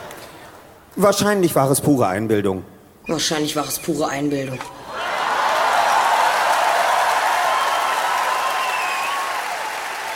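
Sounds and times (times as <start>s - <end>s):
speech: 1.0s - 4.8s
live audience applause: 5.0s - 10.1s.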